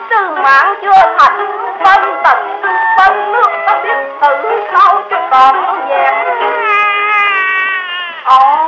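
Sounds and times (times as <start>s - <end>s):
speech: 0.2s - 6.6s, 8.3s - 8.5s
baby crying: 6.3s - 8.6s.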